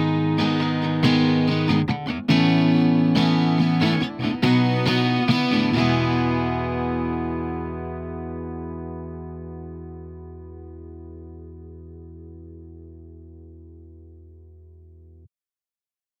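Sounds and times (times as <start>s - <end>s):
guitar improvisation: 0.0s - 15.0s.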